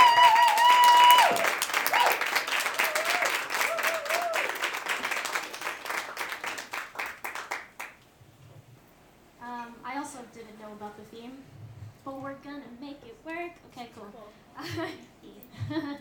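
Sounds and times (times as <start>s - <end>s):
high whistle: 0.0s - 2.2s
crowd whooping: 0.0s - 5.9s
crowd round of applause: 0.0s - 8.0s.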